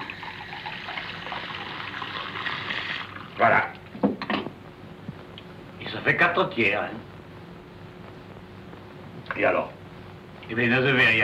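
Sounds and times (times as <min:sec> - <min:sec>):
water poured into a glass: 0:00.0 - 0:03.4
speech: 0:03.4 - 0:03.8, 0:06.0 - 0:07.1, 0:09.4 - 0:09.8, 0:10.5 - 0:11.2.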